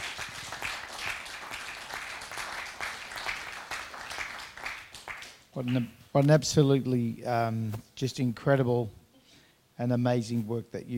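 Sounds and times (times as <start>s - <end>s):
group applause: 0.0s - 5.9s
speech: 5.6s - 9.0s, 9.8s - 10.9s.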